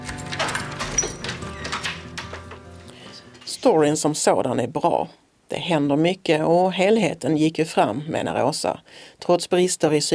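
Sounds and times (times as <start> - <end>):
keys jingling in an apartment door lock: 0.0 - 2.7
speech: 3.6 - 10.1.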